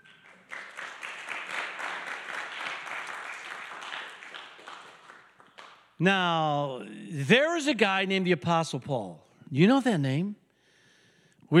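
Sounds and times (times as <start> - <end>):
audience applause: 0.0 - 5.8
speech: 6.0 - 10.4.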